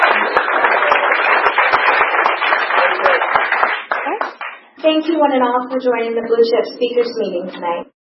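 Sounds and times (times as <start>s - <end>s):
audience applause: 0.0s - 4.6s
speech: 4.8s - 7.9s.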